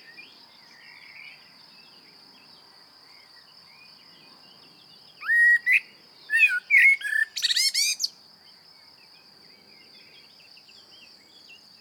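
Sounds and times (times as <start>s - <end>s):
common blackbird singing: 5.2s - 8.1s.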